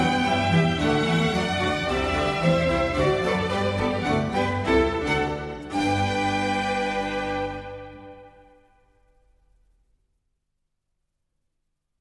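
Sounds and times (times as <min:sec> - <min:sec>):
bassoon concerto in G major, allegro: 0:00.0 - 0:08.8.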